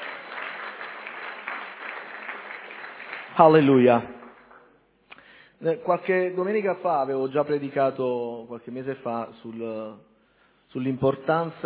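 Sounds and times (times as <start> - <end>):
audience applause: 0.0 - 4.7
speech: 3.4 - 4.2, 5.6 - 10.1, 10.7 - 11.6.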